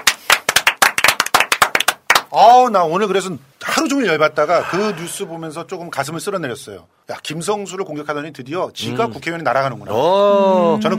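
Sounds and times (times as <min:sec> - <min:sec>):
clapping: 0:00.0 - 0:02.3
speech: 0:02.3 - 0:10.9.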